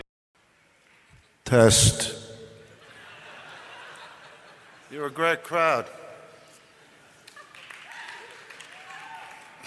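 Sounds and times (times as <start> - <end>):
speech: 1.5 - 2.2, 5.0 - 6.0
laughter: 2.8 - 5.2, 6.9 - 8.4
audience applause: 7.0 - 9.6.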